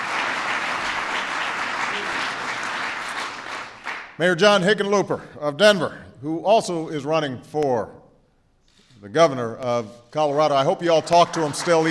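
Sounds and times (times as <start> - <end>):
audience applause: 0.0 - 4.1, 10.8 - 11.8
speech: 4.2 - 8.0, 9.0 - 11.8.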